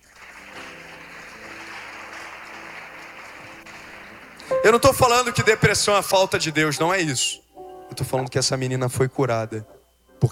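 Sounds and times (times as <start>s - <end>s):
crowd audience applauding: 0.0s - 6.7s
speech: 4.6s - 7.4s, 8.0s - 10.3s.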